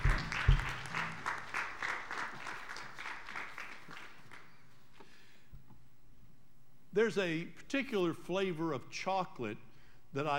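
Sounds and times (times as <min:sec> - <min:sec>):
audience applauding guests: 0:00.0 - 0:04.6
speech: 0:07.0 - 0:10.3.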